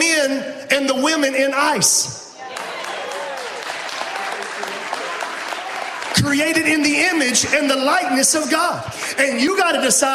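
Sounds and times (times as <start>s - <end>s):
speech: 0.2s - 2.3s, 6.2s - 10.1s
crowd applause: 2.4s - 7.8s.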